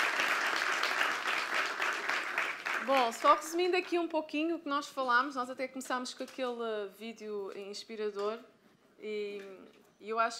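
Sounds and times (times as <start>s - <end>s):
audience applause: 0.0s - 3.5s
speech: 2.8s - 10.3s.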